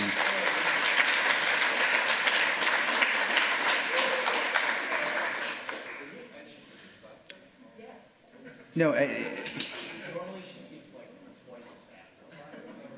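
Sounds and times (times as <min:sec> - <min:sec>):
audience applause: 0:00.0 - 0:06.1
speech: 0:08.8 - 0:09.7.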